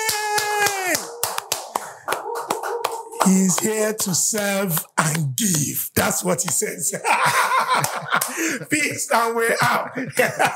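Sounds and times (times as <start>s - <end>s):
round of applause: 0.0s - 7.0s, 7.6s - 8.4s
speech: 3.3s - 10.5s
laughter: 6.1s - 10.5s.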